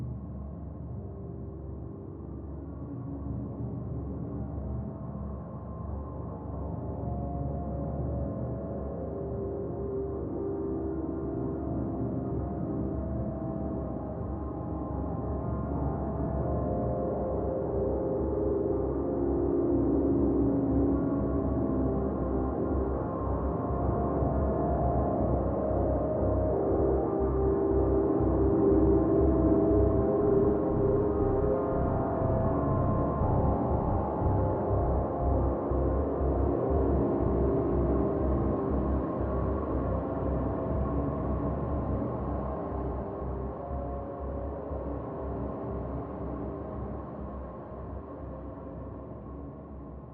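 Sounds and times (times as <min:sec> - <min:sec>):
drone in C: 0:00.2 - 0:50.1.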